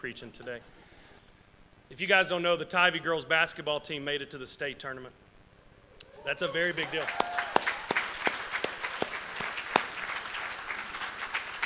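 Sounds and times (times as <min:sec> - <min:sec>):
speech: 0:00.0 - 0:00.9, 0:01.9 - 0:05.2, 0:06.2 - 0:07.4
crowd applauding: 0:06.2 - 0:11.6.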